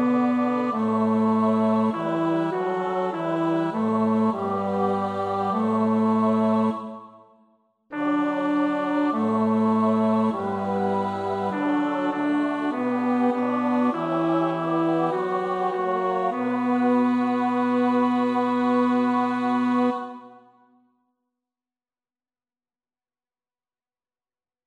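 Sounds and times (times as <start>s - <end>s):
bass: 0.0s - 7.0s, 8.6s - 20.0s.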